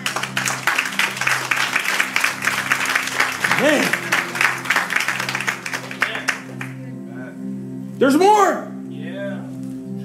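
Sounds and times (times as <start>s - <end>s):
people clapping: 0.0s - 6.9s
speech: 8.0s - 8.7s.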